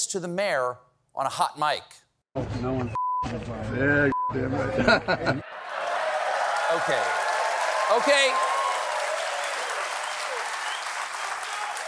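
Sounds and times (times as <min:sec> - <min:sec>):
speech: 0:00.1 - 0:05.5, 0:06.7 - 0:07.2, 0:07.9 - 0:08.5
laughter: 0:04.6 - 0:07.2
audience applause: 0:05.4 - 0:11.8.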